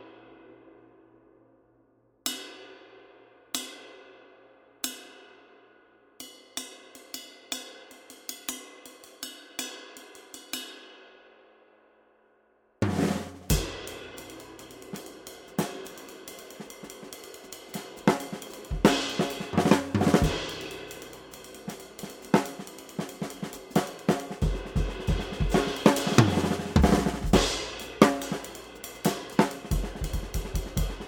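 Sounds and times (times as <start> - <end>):
20-inch ultra dry ride cymbal: 13.5 - 31.0.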